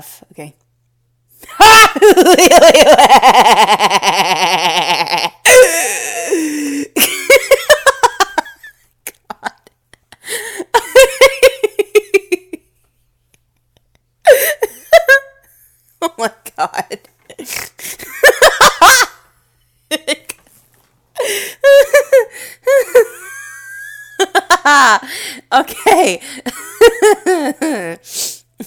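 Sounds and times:
evil laugh: 1.5s - 12.7s, 13.4s - 19.3s, 21.2s - 25.1s, 26.5s - 28.0s.

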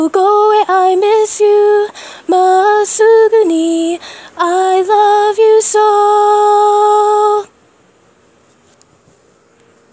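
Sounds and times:
person singing a chorus in Japanese: 0.0s - 7.5s.

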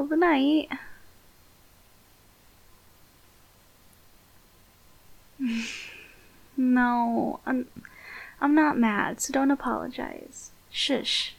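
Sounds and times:
speech: 0.0s - 0.9s, 5.4s - 5.9s, 6.6s - 11.3s
heavy breathing: 5.4s - 6.4s, 7.8s - 8.4s.

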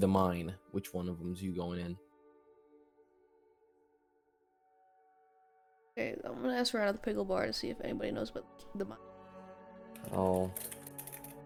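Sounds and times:
speech: 0.0s - 2.1s, 6.0s - 9.1s, 10.0s - 10.8s
light rapid typing on a computer keyboard into a chat: 10.0s - 11.4s.

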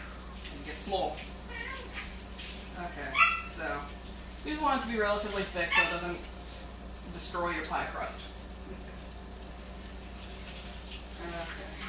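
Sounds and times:
tap water running while washing out a pie plate: 0.0s - 11.8s
speech: 0.9s - 1.4s, 2.8s - 6.4s, 7.1s - 8.8s, 11.2s - 11.7s.

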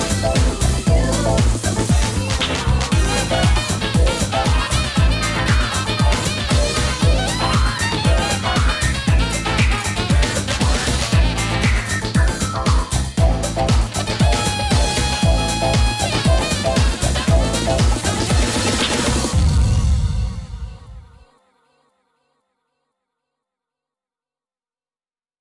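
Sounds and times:
jazzy groove: 0.0s - 19.4s.

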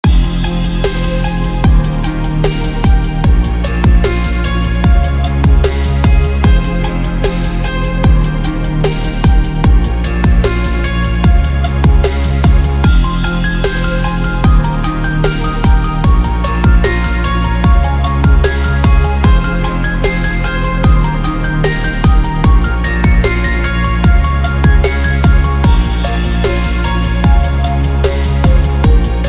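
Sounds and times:
dubstep music: 0.0s - 29.2s.

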